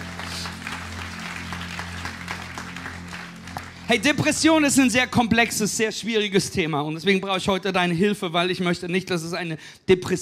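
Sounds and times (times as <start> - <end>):
audience applause: 0.0 - 4.4
speech: 3.9 - 10.2.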